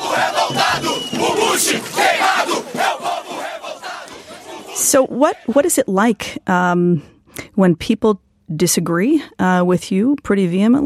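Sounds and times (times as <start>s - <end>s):
street protesters against the Iraq War chanting in São Paulo: 0.0s - 6.2s
speech: 0.2s - 2.3s, 4.9s - 10.8s.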